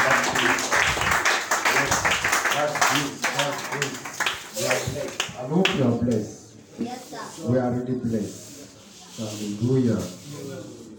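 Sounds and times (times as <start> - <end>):
audience clapping: 0.0 - 5.8
speech: 7.4 - 8.5, 9.2 - 10.8.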